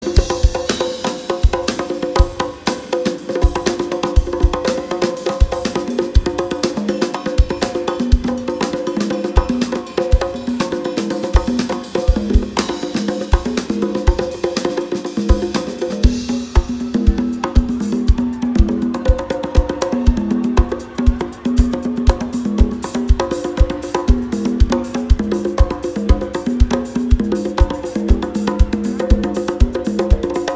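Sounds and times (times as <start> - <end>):
drums: 0.0 - 30.5.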